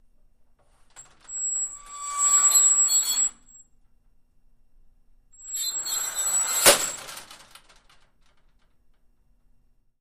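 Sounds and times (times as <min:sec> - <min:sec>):
very squeaky double accordion sliding metal door opening and closing: 0:01.0 - 0:03.5, 0:05.4 - 0:07.4.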